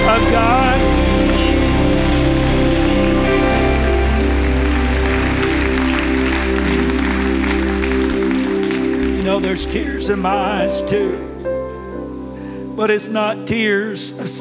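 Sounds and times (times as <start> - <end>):
audience clapping hands: 0.0 - 11.1
speech: 9.4 - 11.3, 12.8 - 14.3.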